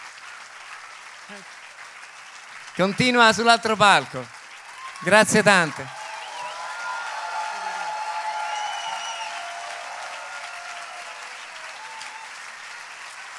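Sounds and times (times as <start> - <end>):
audience applause: 0.0 - 13.3
speech: 1.3 - 1.6, 2.8 - 4.4, 5.0 - 6.0
whistling: 4.7 - 10.8, 11.7 - 12.6.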